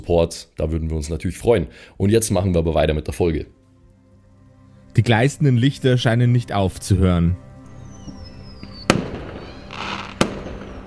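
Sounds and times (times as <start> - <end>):
speech: 0.0 - 3.6, 5.0 - 7.5
crackling hiss: 7.8 - 10.8
fireworks booming: 8.8 - 10.8.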